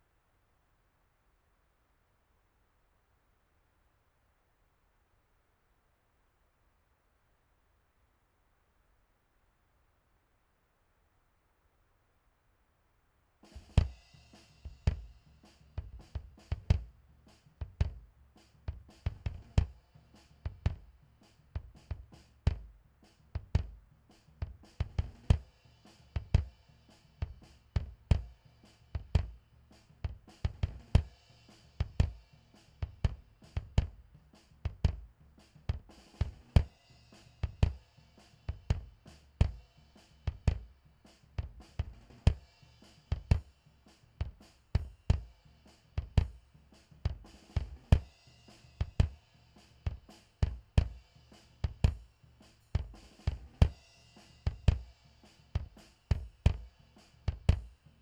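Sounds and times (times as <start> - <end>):
drum: 13.5 - 57.9.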